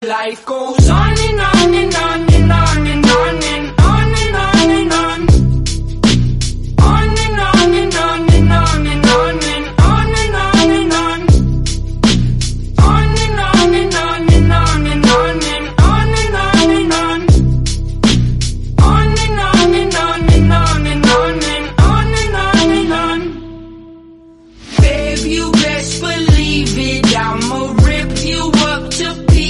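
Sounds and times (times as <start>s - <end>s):
English song: 0.9s - 18.2s, 18.8s - 29.4s.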